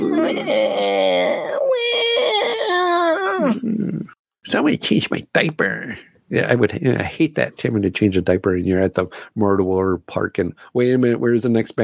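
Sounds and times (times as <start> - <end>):
voice imitating a crying baby: 0.0 - 4.1
speech: 0.2 - 1.9, 4.4 - 11.8.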